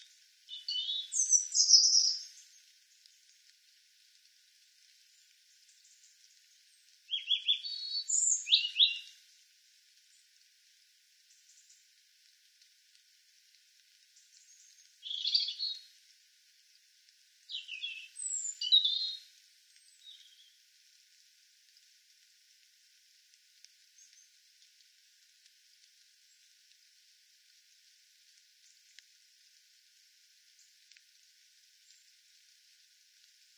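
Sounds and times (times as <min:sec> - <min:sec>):
European robin singing: 0:00.0 - 0:02.6, 0:07.1 - 0:09.1, 0:14.4 - 0:15.9, 0:17.5 - 0:19.2, 0:19.8 - 0:20.6.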